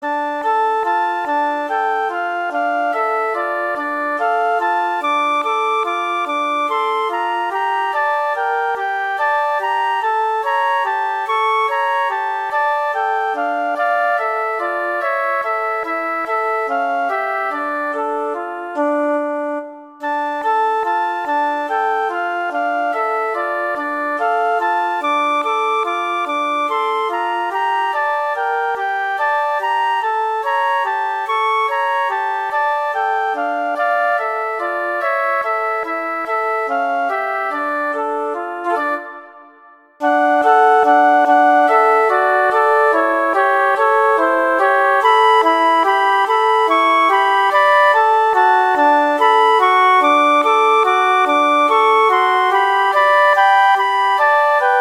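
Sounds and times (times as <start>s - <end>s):
flute melody: 0.0s - 54.7s.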